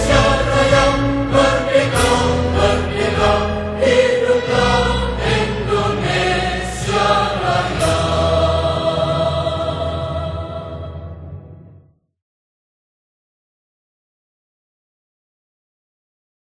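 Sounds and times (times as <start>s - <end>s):
national anthem: 0.0s - 11.5s.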